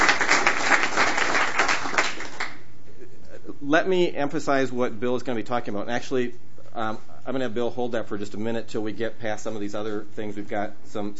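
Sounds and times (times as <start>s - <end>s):
audience applause: 0.0s - 2.6s
speech: 3.7s - 11.1s.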